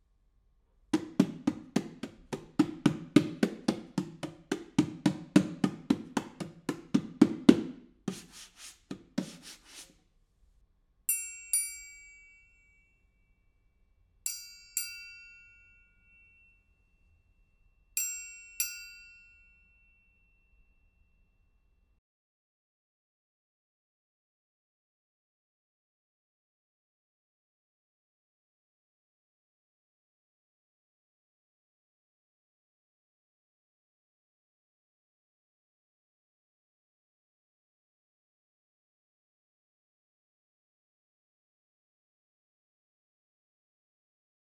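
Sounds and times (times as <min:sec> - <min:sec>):
percussion recorded with ORTF microphone pair: 0:01.0 - 0:10.0, 0:11.1 - 0:12.9, 0:14.3 - 0:16.7, 0:18.0 - 0:20.4.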